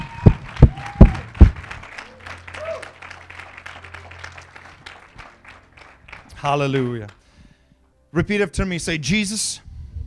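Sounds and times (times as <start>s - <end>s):
audience clapping hands: 0.0s - 7.3s
speech: 6.4s - 7.2s, 8.1s - 9.7s.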